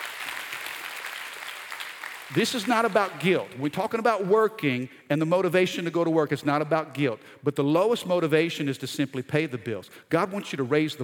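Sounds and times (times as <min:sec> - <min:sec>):
audience clapping hands: 0:00.0 - 0:03.6
speech: 0:02.3 - 0:11.0.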